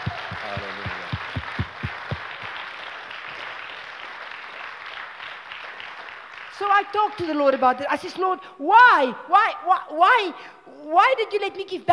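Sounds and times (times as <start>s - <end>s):
low thumps: 0.0s - 2.4s
church congregation clapping for Jesus: 0.0s - 7.8s
speech: 6.6s - 11.9s.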